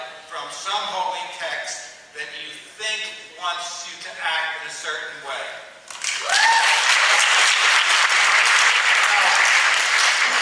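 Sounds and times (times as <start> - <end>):
speech: 0.5 - 8.2
audience applause: 5.9 - 10.4.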